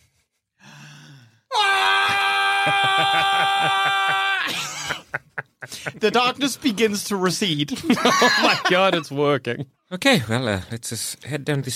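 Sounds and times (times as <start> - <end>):
barbarian scream: 1.5 - 5.0
speech: 2.6 - 4.6, 5.8 - 11.7
laughter: 2.6 - 6.4, 7.7 - 9.6.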